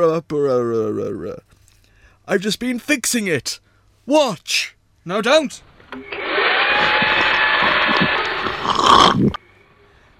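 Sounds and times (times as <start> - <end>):
speech: 0.0 - 1.6, 2.3 - 6.2, 8.9 - 9.4
Hoover vacuum cleaner sucking something up: 6.0 - 9.4.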